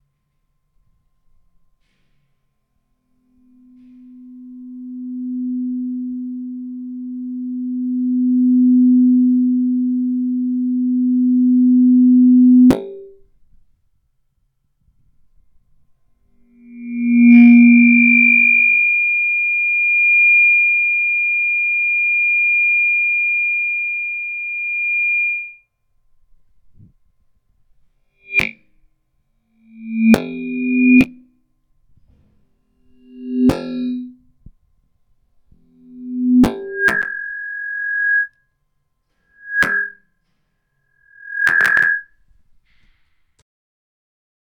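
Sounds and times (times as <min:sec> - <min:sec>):
microphone feedback: 0:03.4 - 0:13.2, 0:16.5 - 0:25.6, 0:28.3 - 0:28.6, 0:29.7 - 0:31.2, 0:33.0 - 0:34.1, 0:35.8 - 0:38.3, 0:39.4 - 0:40.0, 0:41.0 - 0:42.1.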